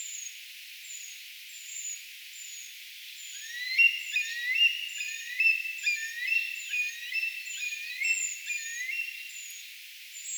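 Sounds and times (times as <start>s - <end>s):
Eurasian treecreeper thin high calls: 3.2s - 9.6s
slurred whistles of another bird: 3.4s - 9.3s.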